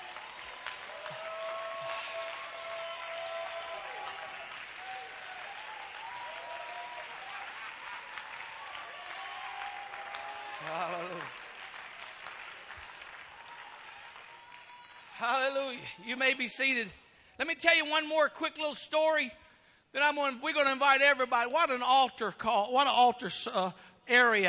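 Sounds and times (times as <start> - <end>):
audience clapping hands: 0.0 - 15.9
cheering: 0.0 - 16.8
speech: 15.2 - 24.4.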